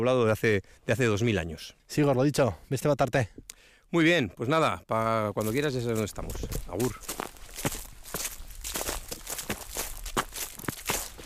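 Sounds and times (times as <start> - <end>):
speech: 0.0 - 7.2
footsteps on fallen autumn leaves in oak woods: 5.4 - 11.2.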